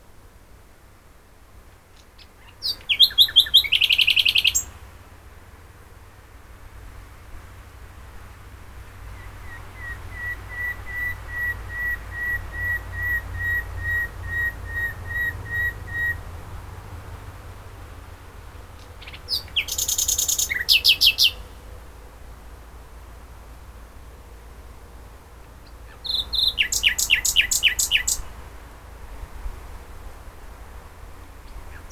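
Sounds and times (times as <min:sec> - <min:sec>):
common nightingale singing: 0:01.9 - 0:04.8, 0:08.8 - 0:16.3, 0:18.6 - 0:21.6, 0:25.4 - 0:28.3, 0:31.4 - 0:31.9.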